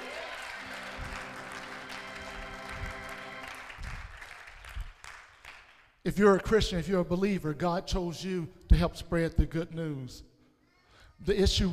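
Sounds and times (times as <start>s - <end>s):
audience clapping: 0.0s - 6.0s
speech: 6.1s - 10.3s, 11.2s - 11.7s.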